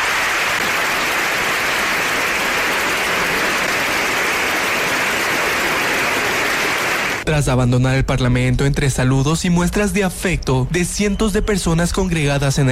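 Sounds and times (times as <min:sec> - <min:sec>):
large crowd clapping in a big hall: 0:00.0 - 0:07.3
speech: 0:07.3 - 0:12.7.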